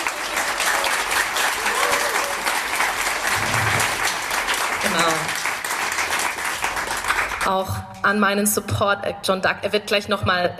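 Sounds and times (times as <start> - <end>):
audience applause: 0.0 - 7.6
speech: 7.4 - 10.5.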